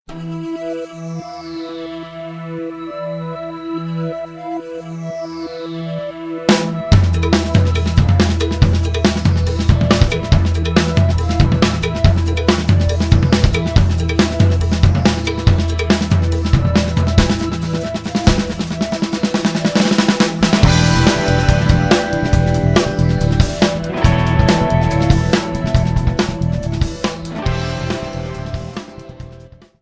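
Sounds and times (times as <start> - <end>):
pulse tone: 5.2 - 28.9.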